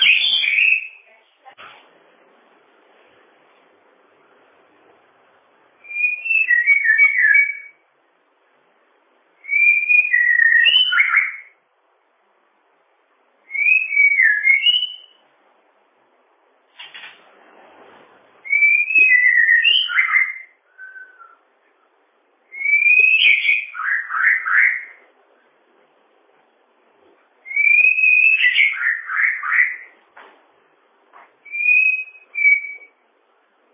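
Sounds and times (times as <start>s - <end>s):
bird song: 0.0s - 1.3s, 5.8s - 7.9s, 9.4s - 11.6s, 13.5s - 15.2s, 18.4s - 25.1s, 27.4s - 30.0s, 31.4s - 33.0s.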